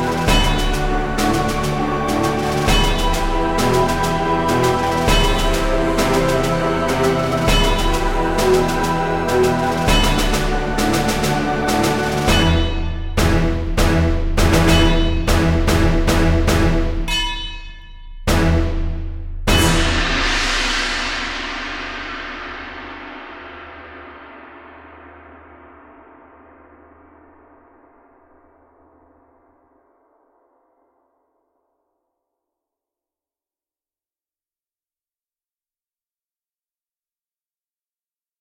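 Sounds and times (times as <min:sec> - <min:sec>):
metal music intro: 0:00.0 - 0:24.0.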